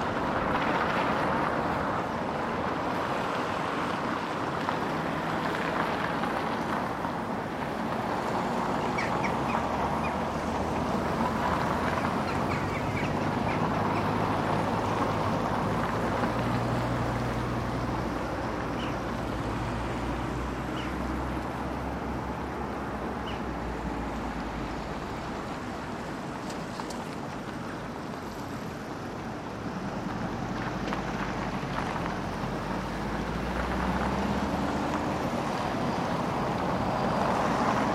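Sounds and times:
medium heavy street traffic: 0.0s - 37.9s
birds: 8.5s - 15.5s, 18.6s - 19.2s, 20.6s - 21.2s, 23.1s - 23.6s
high squeals from cars: 8.6s - 15.0s.

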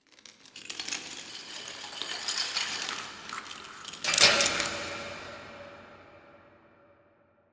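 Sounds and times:
metallic chains and lock: 0.0s - 5.0s.

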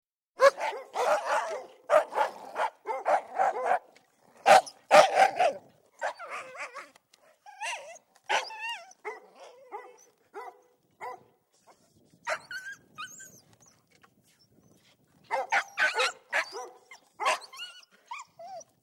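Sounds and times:
labrador and two sheep dogs barking outdoors: 0.4s - 6.8s, 8.3s - 11.3s, 15.3s - 17.5s.

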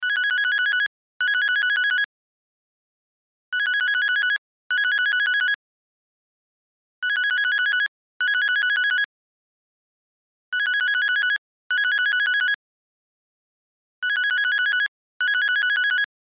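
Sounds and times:
cell phone ringtone: 0.0s - 2.1s, 3.6s - 5.6s, 7.0s - 9.1s, 10.6s - 12.6s, 14.0s - 16.1s.

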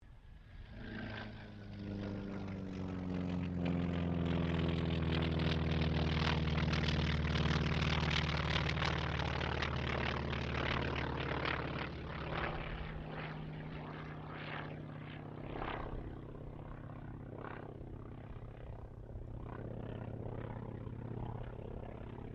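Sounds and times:
T-28D Trojan aircraft passing: 0.0s - 22.3s.

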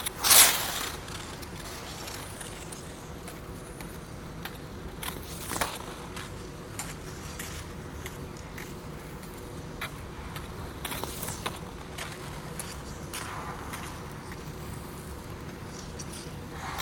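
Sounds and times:
ice skates of one person circling close on an indoor rink: 0.0s - 16.8s.

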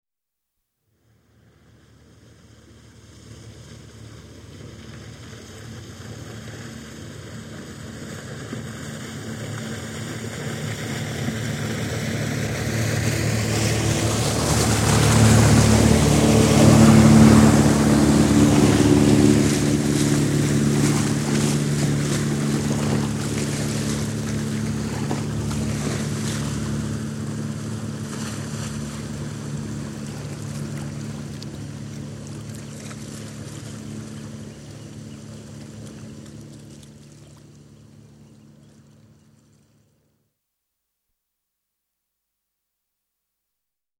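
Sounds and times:
27ft cabin cruiser with 50hp diesel engine passing right to left: 0.9s - 40.3s.

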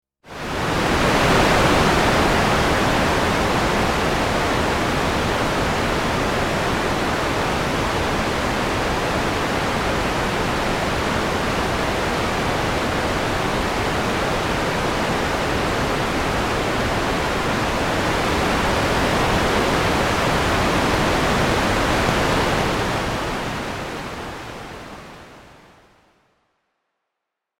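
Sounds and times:
synthesizer electronic white noise: 0.4s - 26.4s.

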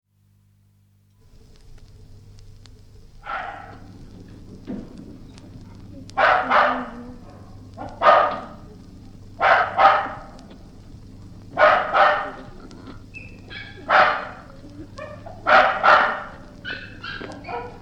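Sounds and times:
dog barking: 3.2s - 3.9s, 6.2s - 8.7s, 9.4s - 10.5s, 11.5s - 12.9s, 13.5s - 17.7s.

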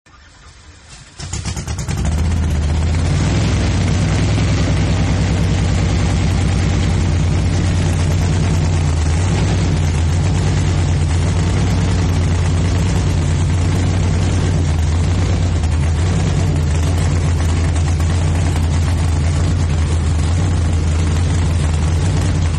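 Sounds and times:
hot rod car engine starting and idling: 0.1s - 22.5s.

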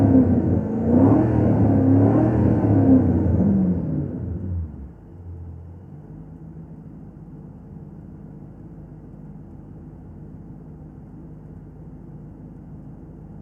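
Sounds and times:
Ford Mustang GT 500 KR engine starting revving idling and stopping from interior: 0.0s - 7.1s.

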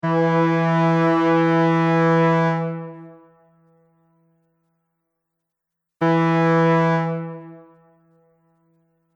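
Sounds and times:
bright ship horn blasts: 0.0s - 3.0s, 6.0s - 7.9s.

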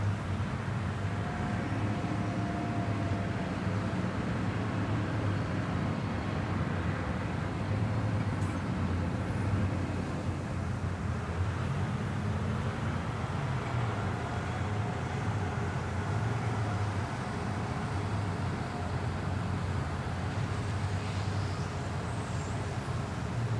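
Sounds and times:
distant construction site ambience: 0.0s - 23.5s.

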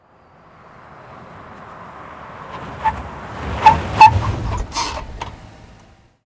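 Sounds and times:
Chevy Silverado truck pulling up: 0.0s - 6.2s
Chevy Silverado anti-lock brakes screeching: 1.1s - 6.0s.

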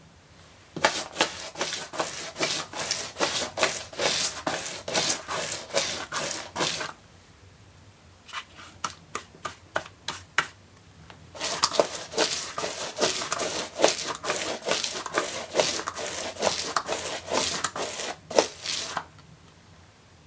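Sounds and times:
brush painting: 0.8s - 6.9s, 11.3s - 19.1s.

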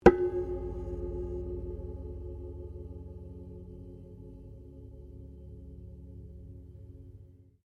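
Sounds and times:
very old wooden zither or autoharp hit: 0.0s - 5.8s.

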